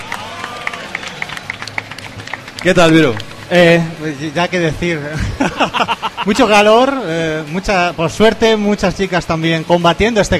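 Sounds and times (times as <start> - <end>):
applause: 0.0 - 3.5
speech: 2.6 - 10.3
laughter: 5.0 - 7.1.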